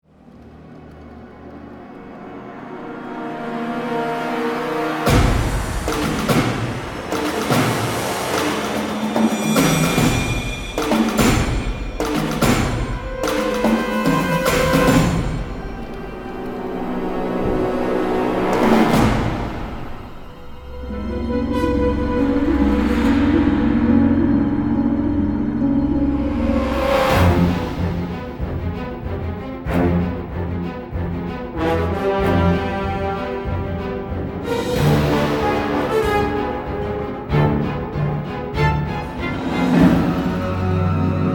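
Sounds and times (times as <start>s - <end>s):
horror thriller music: 0.0s - 41.3s.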